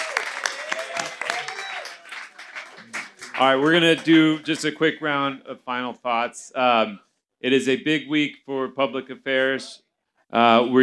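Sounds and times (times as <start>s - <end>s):
faint cheers or whoops: 0.0s - 4.1s
audience applause: 0.0s - 4.8s
speech: 3.4s - 10.8s.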